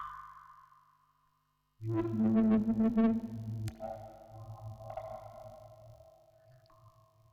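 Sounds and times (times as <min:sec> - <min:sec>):
vocoder voice recorded on tape: 0:01.9 - 0:03.9.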